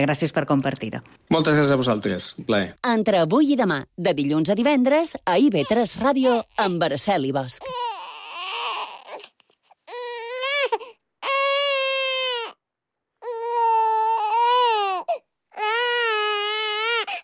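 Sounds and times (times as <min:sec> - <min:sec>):
speech: 0:00.0 - 0:07.8
infant crying: 0:05.5 - 0:06.9, 0:07.6 - 0:12.6, 0:13.2 - 0:17.2.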